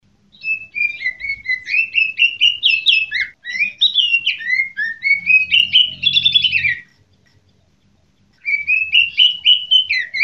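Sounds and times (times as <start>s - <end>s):
songbird twittering song: 0.0s - 10.2s.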